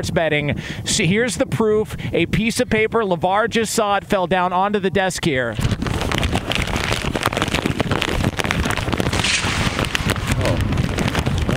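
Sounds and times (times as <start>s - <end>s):
speech: 0.0s - 5.8s
sharp crackling bursts of lightning: 5.2s - 11.5s
thunder and lightning sound effect rumbling: 5.6s - 11.5s
rain-like hiss: 8.4s - 11.5s.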